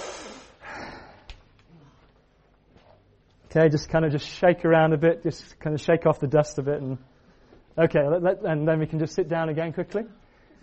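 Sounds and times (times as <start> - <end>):
group of people standing together taking a deep breath in: 0.0 - 1.9
speech: 3.6 - 7.1, 7.8 - 10.2.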